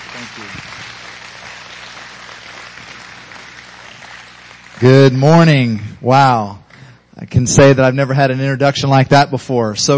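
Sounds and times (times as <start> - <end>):
church congregation applauding to welcome a guest speaker: 0.0 - 5.8
speech: 0.3 - 1.0, 4.8 - 6.6, 7.2 - 9.9.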